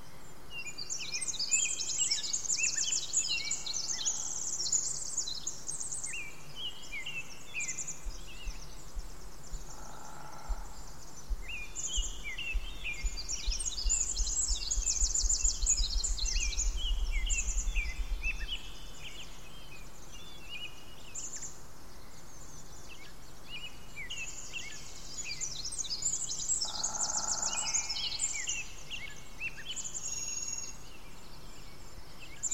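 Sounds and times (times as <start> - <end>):
dense chorus of birdsong including Varied Thrush: 0.0 - 32.5
deep low rumble: 9.6 - 18.8
Pacific Chorus Frogs calling: 26.6 - 28.5.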